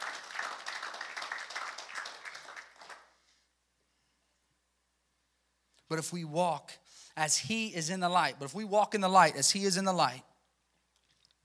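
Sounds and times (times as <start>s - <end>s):
audience clapping: 0.0s - 3.2s
speech: 5.9s - 10.3s.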